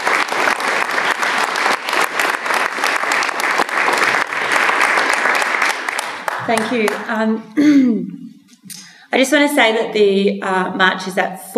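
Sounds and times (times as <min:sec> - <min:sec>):
audience round of applause: 0:00.0 - 0:07.2
speech: 0:06.5 - 0:11.5.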